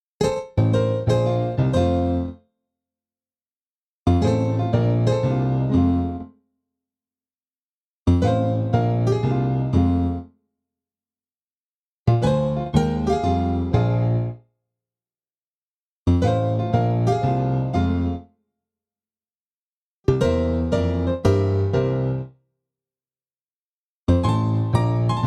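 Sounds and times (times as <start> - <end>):
piano: 0.2 - 2.5, 4.1 - 6.4, 8.1 - 10.4, 12.1 - 14.4, 16.1 - 18.4, 20.0 - 22.4, 24.1 - 25.2.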